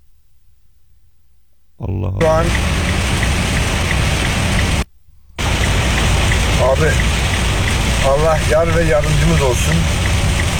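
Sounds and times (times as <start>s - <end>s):
speech: 1.8s - 3.0s, 6.7s - 7.2s, 8.0s - 10.1s
heavy rain drumming on a car being driven: 2.2s - 4.8s, 5.4s - 10.5s.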